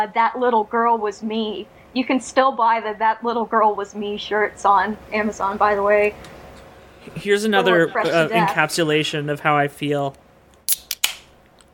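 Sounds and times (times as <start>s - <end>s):
speech: 0.0s - 6.4s, 7.1s - 10.8s
laughter: 7.1s - 9.1s
beer can popping open: 10.7s - 11.3s.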